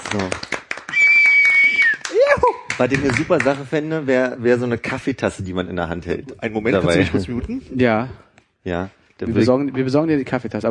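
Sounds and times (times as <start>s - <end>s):
played-in applause sound effect: 0.0s - 3.7s
speech: 0.1s - 0.5s, 2.4s - 10.6s.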